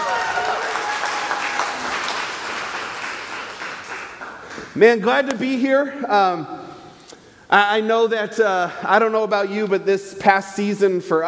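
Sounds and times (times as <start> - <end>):
faint cheering: 0.0 - 2.2
crowd applause: 0.0 - 4.6
speech: 4.7 - 6.6, 7.5 - 11.2.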